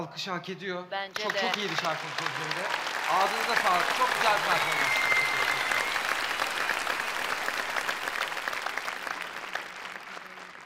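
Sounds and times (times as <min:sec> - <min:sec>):
speech: 0:00.0 - 0:05.4
audience applause: 0:01.2 - 0:10.6.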